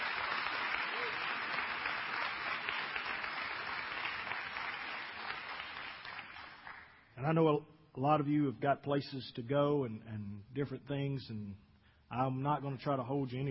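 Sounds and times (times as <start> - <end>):
audience applauding, hand clapping: 0.0 - 7.0
speech: 7.2 - 13.4.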